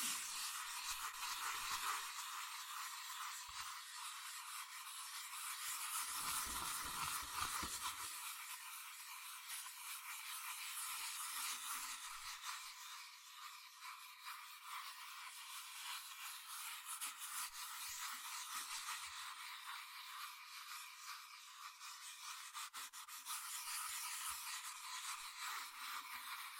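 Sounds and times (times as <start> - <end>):
fast scratching and tracing on cardboard and paper: 0.0 - 26.5.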